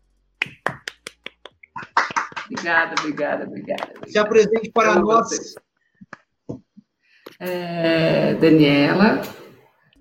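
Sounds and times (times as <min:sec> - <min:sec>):
hand clapping: 0:00.4 - 0:04.1
speech: 0:02.5 - 0:05.6, 0:07.4 - 0:09.4.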